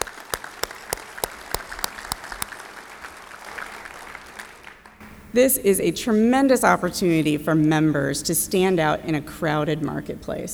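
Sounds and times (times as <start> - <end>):
audience applause: 0.0 - 5.3
speech: 5.3 - 10.5.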